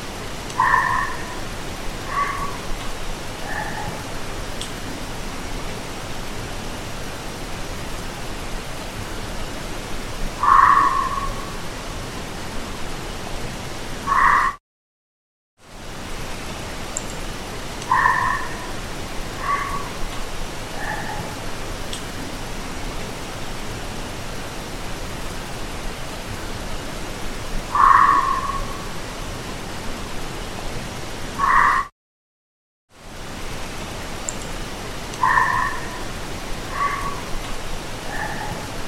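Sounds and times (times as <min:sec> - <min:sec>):
fox barks: 0:00.6 - 0:01.4, 0:02.1 - 0:02.6, 0:03.4 - 0:04.0, 0:10.4 - 0:11.5, 0:14.0 - 0:14.6, 0:17.9 - 0:18.7, 0:19.4 - 0:19.9, 0:20.8 - 0:21.3, 0:27.7 - 0:28.8, 0:31.4 - 0:31.9, 0:35.2 - 0:36.1, 0:36.7 - 0:37.3, 0:38.1 - 0:38.7.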